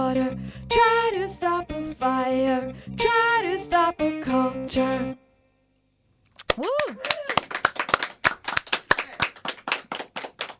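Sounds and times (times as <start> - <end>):
speech: 0.4 - 5.2, 6.6 - 7.4
studio guests clapping after a song: 6.4 - 10.5.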